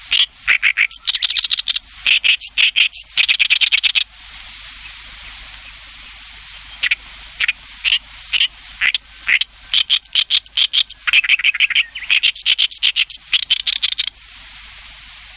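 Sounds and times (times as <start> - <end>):
Oriental reed warbler singing croaking rattling runs: 0.0 - 4.1, 4.8 - 14.1.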